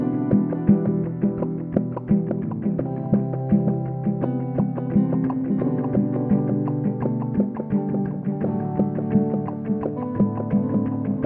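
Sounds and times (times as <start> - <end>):
bubbling lounge music: 0.0 - 11.2.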